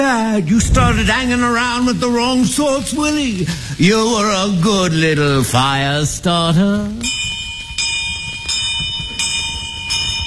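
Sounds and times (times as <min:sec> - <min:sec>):
speech: 0:00.0 - 0:07.2
fire alarm bells ringing: 0:07.1 - 0:10.2.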